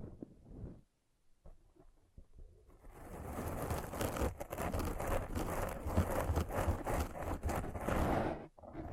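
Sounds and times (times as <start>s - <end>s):
heavy rumbling rough rubbing: 2.7s - 8.9s
quick dense scratch strokes: 2.7s - 8.9s.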